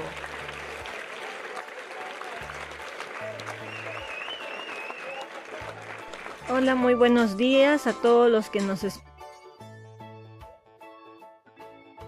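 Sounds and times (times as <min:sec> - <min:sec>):
small group clapping: 0:00.0 - 0:07.4
speech: 0:06.5 - 0:09.0.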